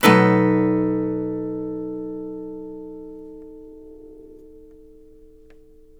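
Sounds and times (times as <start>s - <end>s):
blues guitar chords: 0.0s - 5.9s.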